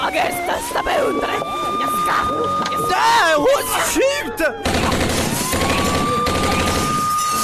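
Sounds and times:
speech: 0.1s - 5.1s
loud dense volley of gunshots: 4.6s - 7.3s.

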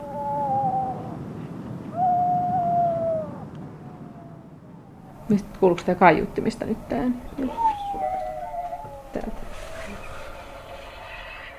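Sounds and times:
Madeiran storm petrel wailing call: 0.0s - 11.5s
low rumbling background: 3.8s - 11.5s
speech: 5.3s - 7.7s.

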